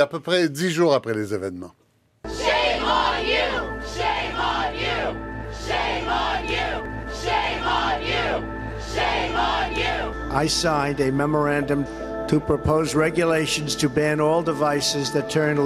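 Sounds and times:
speech: 0.0s - 1.8s, 7.9s - 15.6s
crowd of students chanting: 2.3s - 10.2s.

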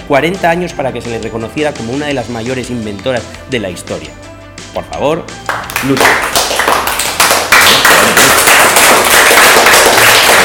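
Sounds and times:
speech: 0.1s - 6.5s
audience applause: 5.8s - 10.4s.

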